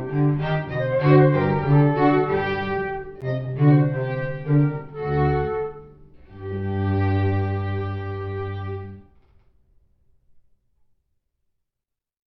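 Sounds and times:
string quartet playing a Baroque allegro: 0.0s - 9.1s.

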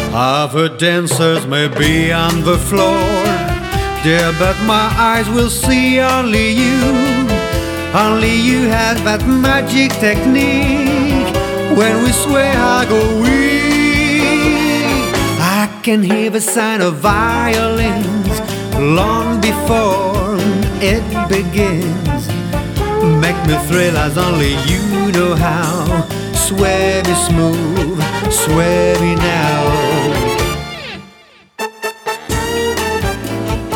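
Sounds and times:
swing band orchestra playing: 0.0s - 33.7s.

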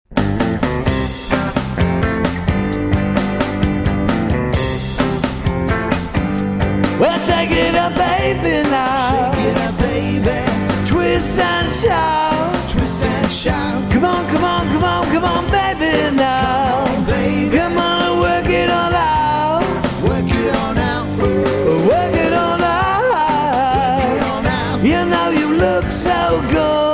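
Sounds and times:
rock music: 0.0s - 26.9s.

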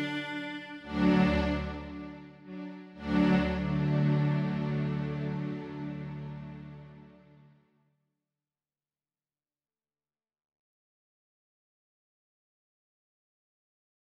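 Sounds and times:
cello: 0.0s - 7.5s.

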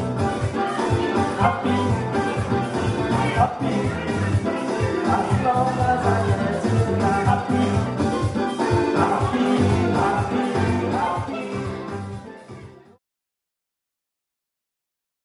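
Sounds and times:
steel drum band playing: 0.0s - 11.1s.

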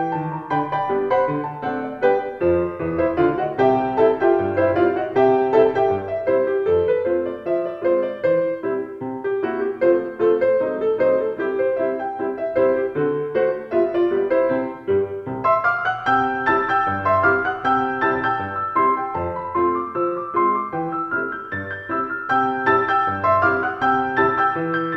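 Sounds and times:
piano piece: 0.0s - 24.9s.

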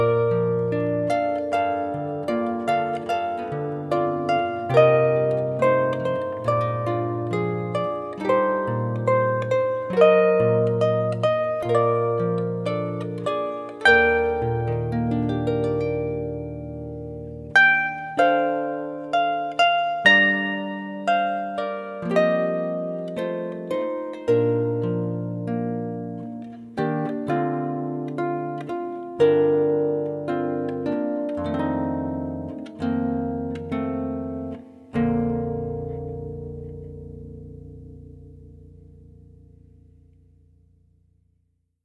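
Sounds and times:
harp playing Christmas carols: 0.0s - 41.2s.

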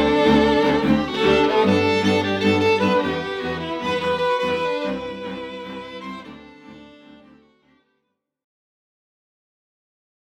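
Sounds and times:
rock quartet playing: 0.0s - 6.7s
classical string quartet playing: 0.0s - 7.8s.

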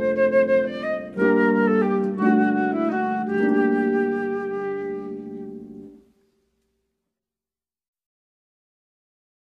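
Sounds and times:
flute: 0.0s - 6.0s
harp: 0.0s - 6.1s.

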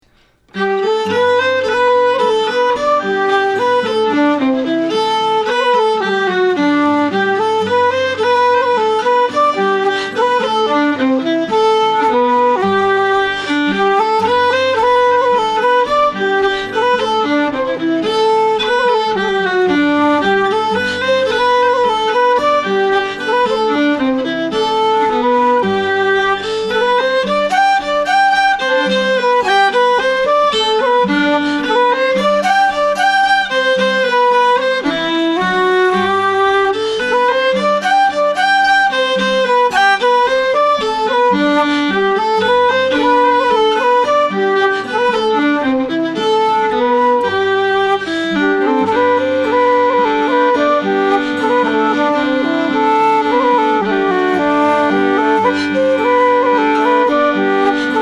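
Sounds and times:
celtic band playing a tune: 0.5s - 58.0s.

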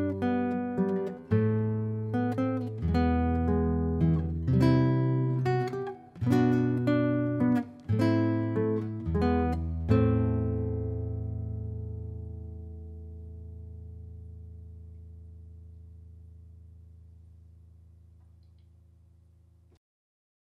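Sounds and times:
classical guitar: 0.0s - 17.8s.

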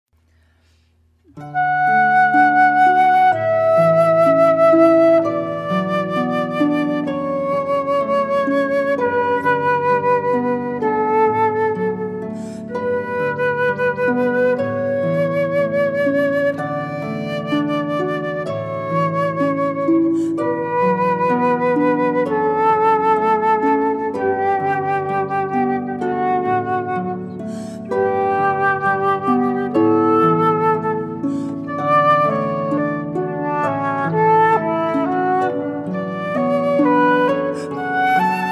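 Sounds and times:
flute: 1.3s - 38.5s.

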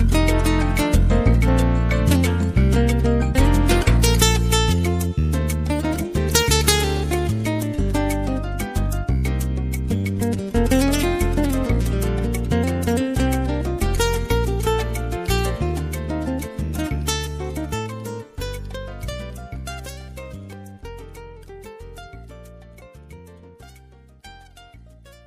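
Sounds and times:
Latin jazz music: 0.0s - 25.2s.

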